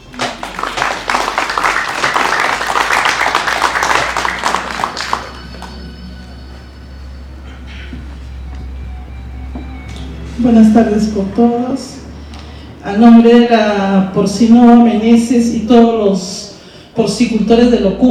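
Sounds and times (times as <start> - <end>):
audience applause: 0.0 - 6.6
low hum: 2.5 - 16.0
speech: 10.4 - 12.0, 12.9 - 18.0.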